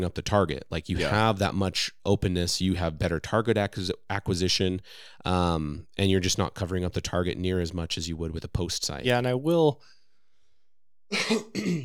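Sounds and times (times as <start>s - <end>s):
speech: 0.0s - 10.0s, 11.1s - 11.8s
person sneezing: 11.1s - 11.8s.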